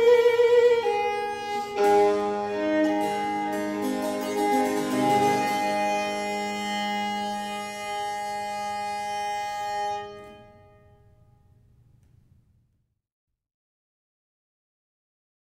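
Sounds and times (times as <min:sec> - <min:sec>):
violin sonata played with two strings: 0:00.0 - 0:11.2.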